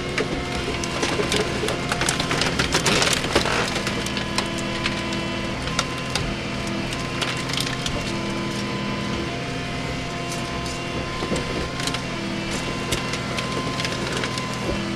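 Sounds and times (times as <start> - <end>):
car being crushed: 0.1 - 14.9.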